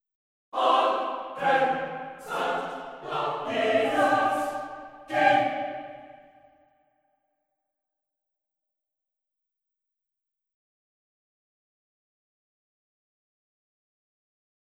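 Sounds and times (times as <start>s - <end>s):
staccato notes: 0.6s - 6.1s.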